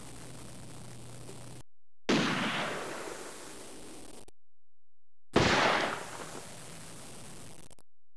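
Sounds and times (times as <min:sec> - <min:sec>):
gunshot: 0:02.1 - 0:03.6, 0:05.4 - 0:06.5.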